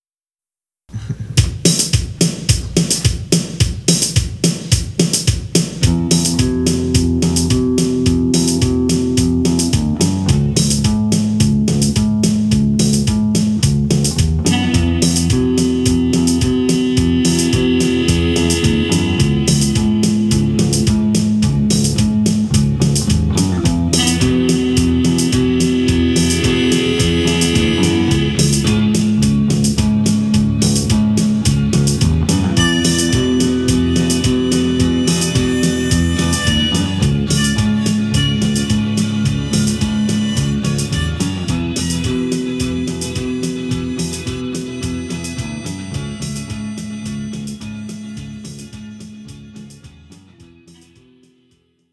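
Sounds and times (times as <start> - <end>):
boogie music: 1.3 - 51.8.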